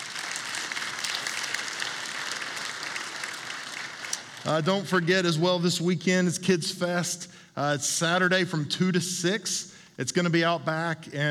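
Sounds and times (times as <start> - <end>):
audience applauding: 0.0 - 5.1
speech: 4.4 - 11.2.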